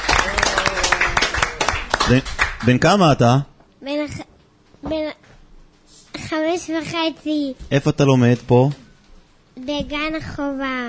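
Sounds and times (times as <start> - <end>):
audience applauding a young boy at a gathering: 0.0 - 3.3
speech: 2.1 - 3.5, 4.1 - 5.3, 6.3 - 8.8, 9.6 - 10.8.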